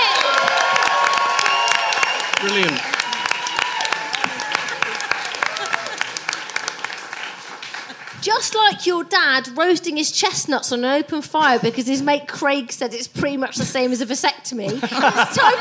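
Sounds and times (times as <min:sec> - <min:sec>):
audience applause: 0:00.0 - 0:08.8
laughter: 0:04.2 - 0:06.8, 0:07.5 - 0:08.2, 0:14.6 - 0:15.5
speech: 0:08.3 - 0:15.5.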